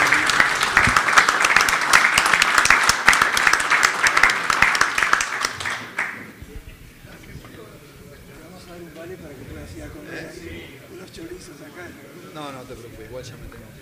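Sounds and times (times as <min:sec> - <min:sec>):
crowd applause: 0:00.0 - 0:06.3.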